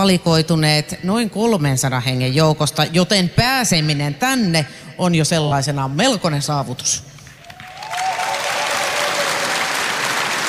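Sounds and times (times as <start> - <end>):
speech: 0.0 - 7.1
audience applause: 7.4 - 10.4.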